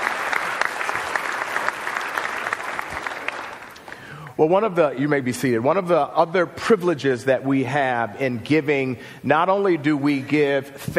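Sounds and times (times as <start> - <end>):
audience applause: 0.0 - 4.0
speech: 4.4 - 10.9.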